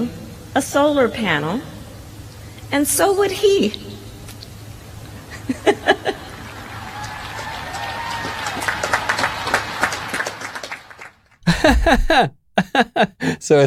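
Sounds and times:
speech: 0.0 - 1.7, 2.7 - 3.9, 11.9 - 13.6
polite applause: 6.2 - 12.3
laughter: 11.4 - 13.4.

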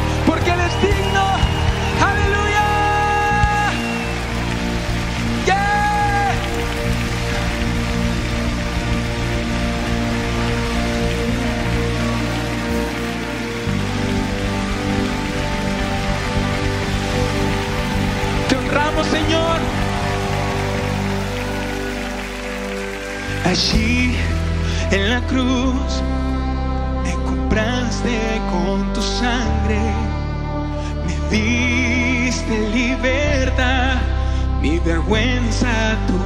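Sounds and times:
cheers and raised voices: 0.0 - 24.6
audience applauding: 0.0 - 25.3
sustained organ-like chords: 0.0 - 36.2.

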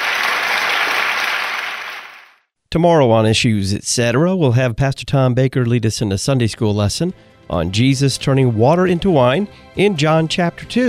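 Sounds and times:
audience applause for a panel of guests: 0.0 - 2.4
speech: 2.7 - 10.8.

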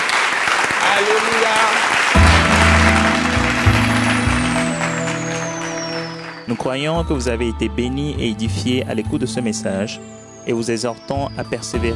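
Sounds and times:
audience clapping: 0.0 - 7.0
speech: 1.0 - 2.3, 6.5 - 11.9
organ-like chords: 2.1 - 11.9.

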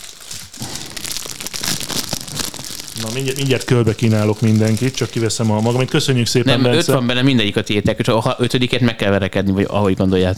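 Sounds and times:
chocolate bar wrapper being torn open: 0.0 - 6.9
laughter: 3.0 - 10.3
speech: 3.0 - 10.3.

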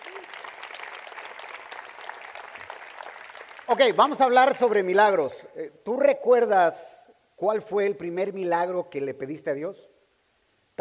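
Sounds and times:
audience applause: 0.0 - 4.2
speech: 3.7 - 9.9.

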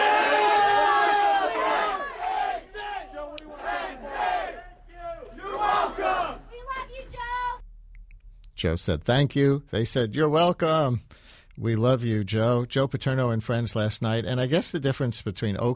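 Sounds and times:
large crowd cheering and chanting: 0.0 - 7.5
speech: 8.6 - 15.7.

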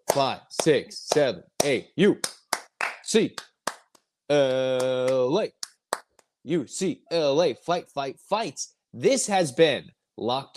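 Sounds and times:
rhythmic hand claps for a college basketball clap-along: 0.0 - 6.2
speech: 0.1 - 2.4, 3.1 - 3.5, 4.3 - 5.6, 6.4 - 10.5.

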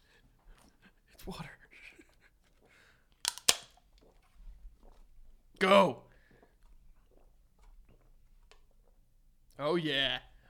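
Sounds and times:
speech: 1.3 - 1.6, 5.6 - 6.0, 9.6 - 10.3
drink can punctured for shotgunning: 3.2 - 3.8.

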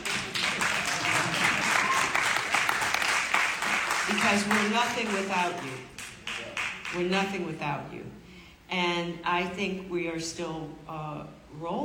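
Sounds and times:
actors leading applause for their audience: 0.0 - 7.0
speech: 4.2 - 5.9, 6.9 - 11.8.

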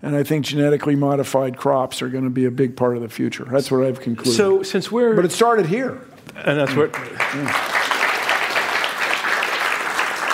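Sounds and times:
speech: 0.1 - 7.8
crowd clapping: 6.6 - 10.3.

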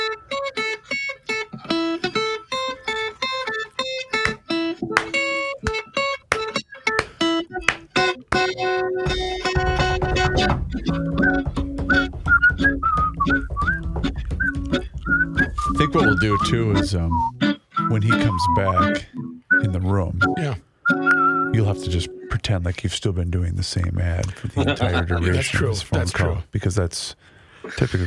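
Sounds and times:
transitional hold music: 0.0 - 22.3
speech: 16.2 - 20.6, 21.6 - 28.0
laughter: 24.2 - 26.1.

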